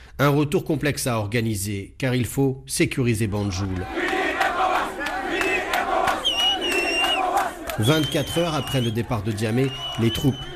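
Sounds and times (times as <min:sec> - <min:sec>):
speech: 0:00.2 - 0:04.0, 0:07.8 - 0:10.5
large crowd cheering and shouting: 0:03.8 - 0:10.5
high whistles: 0:06.1 - 0:10.5.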